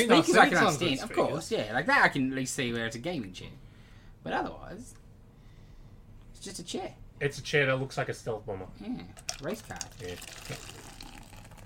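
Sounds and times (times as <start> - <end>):
speech: 0.0 - 3.6, 4.2 - 5.0, 6.4 - 10.9
drink poured from a can into a cup: 9.2 - 11.6.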